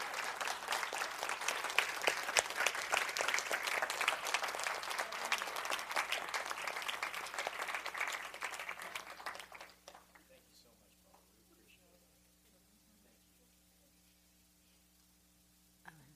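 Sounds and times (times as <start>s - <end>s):
audience applauding: 0.0s - 10.4s.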